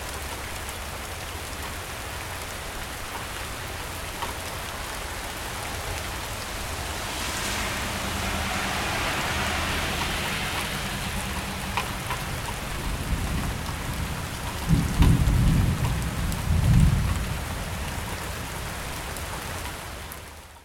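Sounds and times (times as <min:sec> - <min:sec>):
light rain: 0:00.0 - 0:20.6
thunder: 0:05.2 - 0:18.3.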